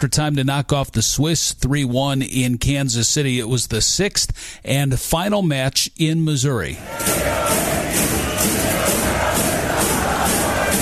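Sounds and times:
speech: 0.0s - 9.9s
Argentinian football fans banging on the spiral ramps at Arrowhead Stadium: 6.8s - 10.8s.

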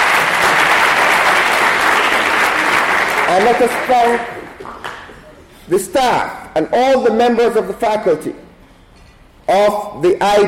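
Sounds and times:
audience applause: 0.0s - 5.1s
speech: 3.3s - 4.8s, 5.7s - 8.4s, 9.5s - 10.4s.

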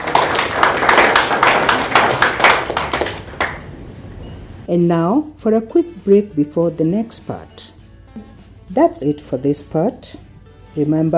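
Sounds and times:
clapping: 0.0s - 3.7s
speech: 4.7s - 10.2s, 10.8s - 11.1s.

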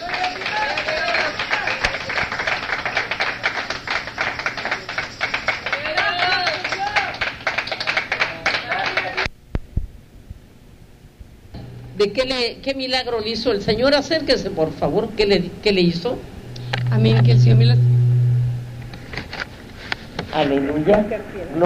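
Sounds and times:
crowd clapping: 0.0s - 9.3s
speech: 12.0s - 16.3s, 16.9s - 17.9s, 20.4s - 21.6s.

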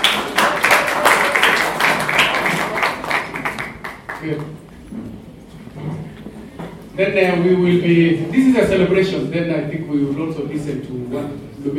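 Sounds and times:
audience clapping: 0.0s - 4.8s
speech: 4.2s - 5.1s, 7.0s - 11.7s.

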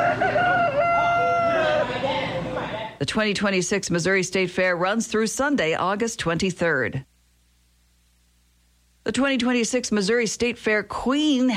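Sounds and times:
rooster crowing in a crowing contest at a state fair: 0.0s - 2.4s
speech: 3.0s - 7.1s, 9.1s - 11.5s.

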